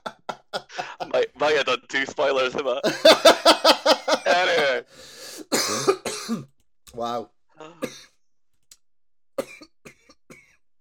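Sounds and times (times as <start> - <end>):
laughter: 0.0 - 1.3, 2.8 - 4.9
speech: 1.4 - 4.9
person coughing: 5.5 - 6.5, 9.4 - 10.6.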